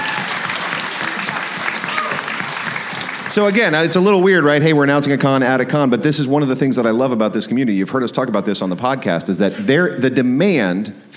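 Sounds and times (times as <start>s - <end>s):
audience applause: 0.0s - 4.1s
speech: 3.4s - 11.1s.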